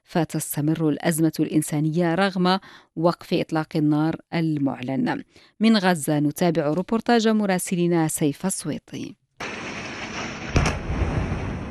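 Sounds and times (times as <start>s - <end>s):
speech: 0.1s - 9.6s
explosions in a war zone: 9.4s - 11.6s.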